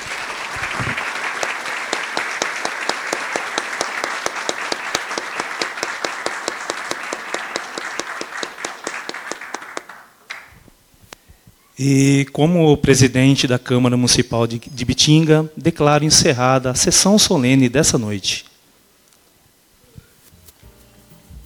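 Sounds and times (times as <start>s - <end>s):
audience applause: 0.0s - 10.7s
speech: 11.8s - 18.5s.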